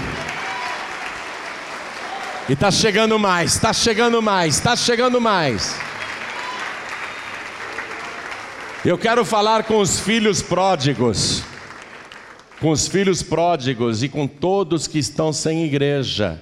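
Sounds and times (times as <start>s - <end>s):
audience applause: 0.0s - 13.1s
speech: 2.5s - 5.9s, 8.8s - 11.5s, 12.6s - 16.4s.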